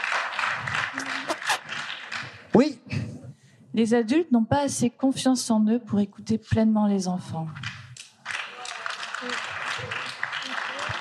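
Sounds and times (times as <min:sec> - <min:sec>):
small round of applause: 0:00.0 - 0:02.7, 0:07.6 - 0:10.9
murmuring voices: 0:00.9 - 0:01.7, 0:08.6 - 0:10.9
speech: 0:03.8 - 0:07.6.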